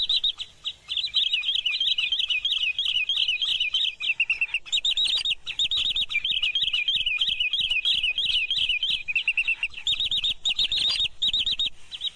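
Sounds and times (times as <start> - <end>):
green sandpiper calling: 0.0 - 12.1.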